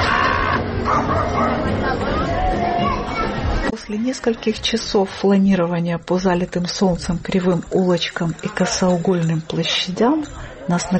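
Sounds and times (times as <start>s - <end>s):
dogs barking: 0.0s - 2.0s
crowd chatter on a busy street: 0.0s - 10.9s
speech: 3.9s - 10.9s.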